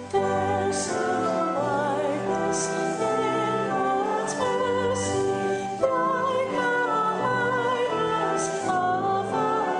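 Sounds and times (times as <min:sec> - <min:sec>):
choir singing: 0:00.2 - 0:09.7.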